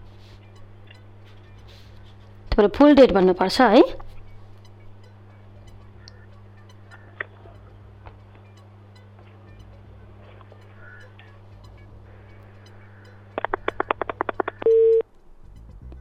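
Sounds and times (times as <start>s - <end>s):
faint steady hum: 0.0s - 15.9s
speech: 2.6s - 4.0s
telephone busy tone after a phone line cuts out: 13.4s - 15.0s.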